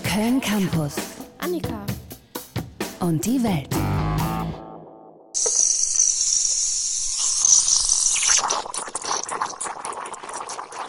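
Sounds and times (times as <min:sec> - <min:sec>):
speech: 0:00.1 - 0:01.8, 0:03.0 - 0:04.0
café coffee machine steam wand frothing milk for cappuccino: 0:05.4 - 0:10.8.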